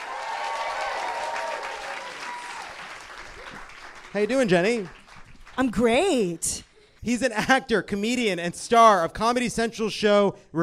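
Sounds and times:
comedy panel event audience clapping: 0.0 - 7.6
speech: 4.1 - 5.0, 5.6 - 10.6.

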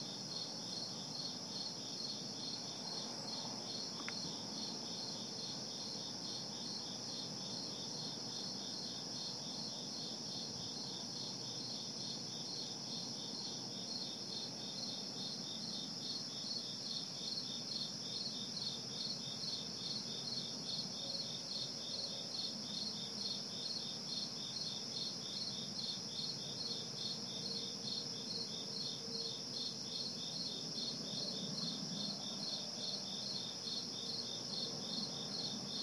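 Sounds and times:
cricket chirping: 0.0 - 35.8.

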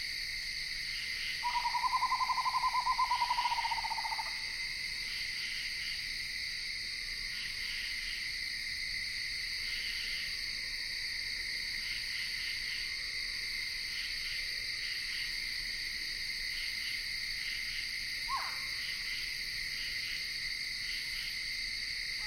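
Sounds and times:
insects in Ithaca New York: 0.0 - 22.2
screech owl calling in Ithaca New York: 1.4 - 4.3, 18.3 - 18.7.

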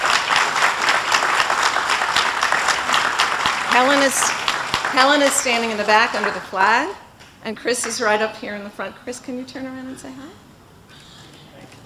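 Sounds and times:
audience applause: 0.0 - 7.0
speech: 3.8 - 10.4.

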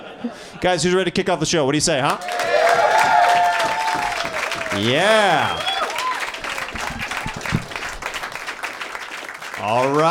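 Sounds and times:
speech: 0.2 - 3.1, 4.8 - 5.7, 9.6 - 10.0
audience clapping for comedian: 2.2 - 10.0.

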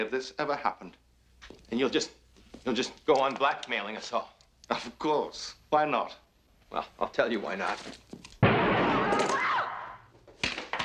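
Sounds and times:
speech: 0.0 - 8.3
gunshot in a radio drama: 8.4 - 9.9.

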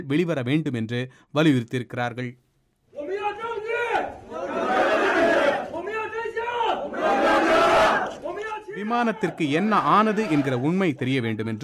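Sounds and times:
speech: 0.0 - 2.4, 8.8 - 11.6
protesters chanting outside airline office: 3.0 - 8.5, 9.6 - 10.6.

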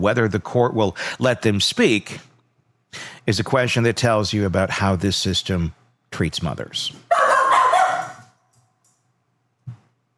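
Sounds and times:
speech: 0.0 - 2.3, 2.9 - 7.1
dog barking: 7.1 - 8.3.

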